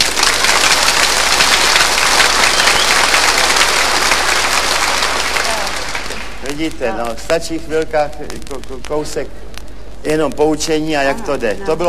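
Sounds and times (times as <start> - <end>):
frenetic audience applause: 0.0 - 6.8
speech: 6.6 - 11.8.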